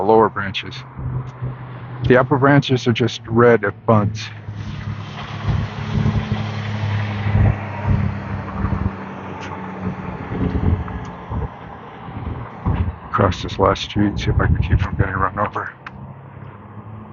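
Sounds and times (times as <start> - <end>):
speech: 0.0 - 5.0, 13.2 - 15.8
wind blowing on a street: 0.0 - 17.1.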